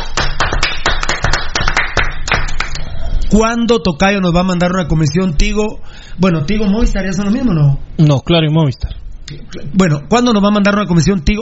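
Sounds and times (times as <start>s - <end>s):
sharp steady hand claps: 0.0s - 2.9s
speech: 3.3s - 11.4s.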